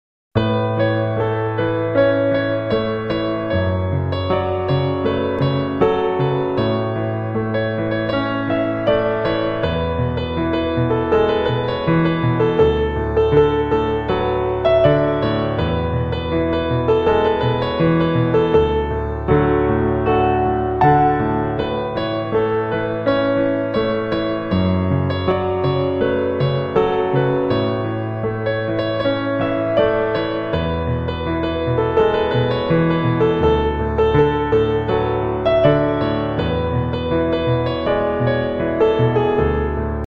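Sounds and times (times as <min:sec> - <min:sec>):
piano instrumental love ringtone: 0:00.4 - 0:40.0.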